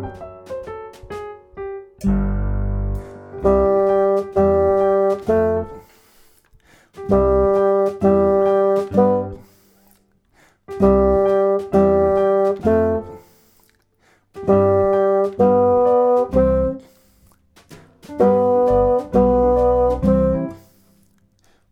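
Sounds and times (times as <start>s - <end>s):
bassoon: 2.0s - 5.9s, 7.1s - 9.5s, 10.7s - 13.2s, 14.4s - 16.9s, 18.1s - 20.7s.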